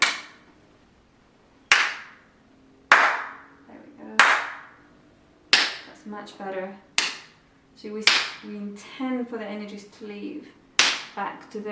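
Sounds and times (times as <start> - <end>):
hand claps echoing off room walls: 0.0 - 0.5, 1.7 - 2.3, 2.9 - 3.6, 4.2 - 4.8, 5.5 - 5.9, 7.0 - 7.4, 8.0 - 8.5, 10.8 - 11.2
speech: 6.1 - 6.9, 7.8 - 10.6, 11.2 - 11.7.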